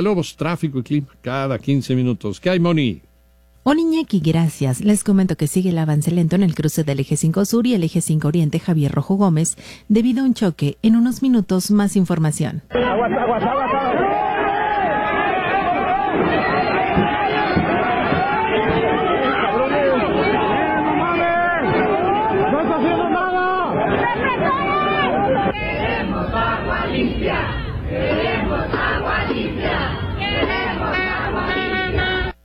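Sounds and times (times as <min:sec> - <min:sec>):
speech: 0:00.0 - 0:14.4
protest crowd shouting for clean water: 0:12.7 - 0:32.3.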